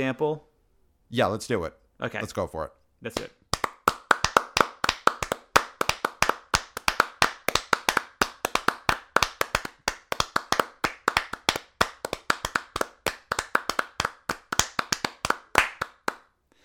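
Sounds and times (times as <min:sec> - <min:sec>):
speech: 0:00.0 - 0:00.5, 0:01.1 - 0:03.4
sustained exuberant applause from many hands: 0:03.2 - 0:16.3.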